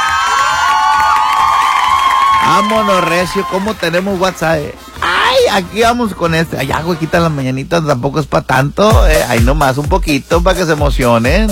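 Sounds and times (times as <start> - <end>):
studio audience cheering and whooping: 0.0 - 4.4
speech: 2.5 - 11.5.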